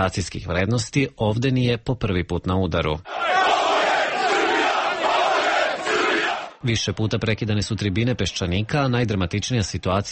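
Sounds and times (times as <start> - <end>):
speech: 0.0 - 3.7, 6.6 - 10.1
crowd of local right-wing extremists shouting chants at a public forum in Aranđelovac: 3.1 - 6.6.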